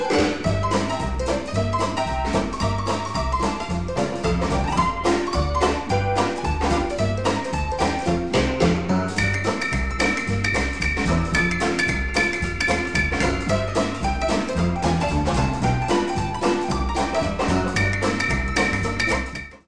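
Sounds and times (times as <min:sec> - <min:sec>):
old blues piano roll music: 0:00.0 - 0:19.6.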